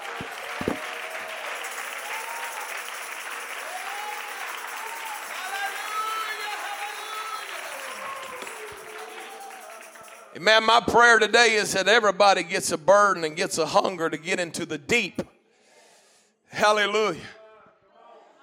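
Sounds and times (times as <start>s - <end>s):
audience clapping hands: 0.0s - 11.0s
speech: 10.4s - 15.3s, 16.5s - 17.4s.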